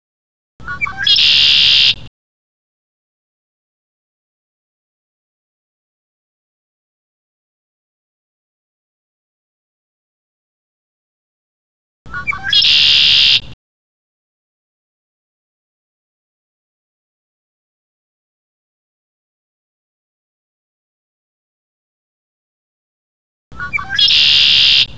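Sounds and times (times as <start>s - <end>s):
conklaree birdsong: 0.6s - 2.0s, 12.1s - 13.6s, 23.5s - 24.9s.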